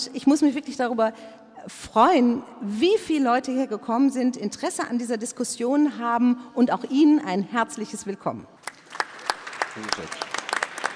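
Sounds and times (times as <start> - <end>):
speech: 0.0 - 8.6, 9.8 - 10.3
audience applauding at a panel discussion on China: 8.7 - 10.9.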